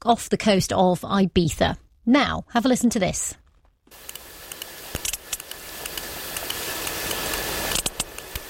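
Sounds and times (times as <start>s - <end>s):
speech: 0.0s - 4.2s
sperm whale clicks from the eastern Mediterranean: 4.0s - 8.4s.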